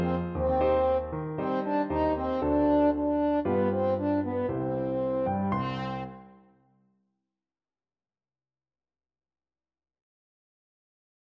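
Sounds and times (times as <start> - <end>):
French horn: 0.0 - 6.3.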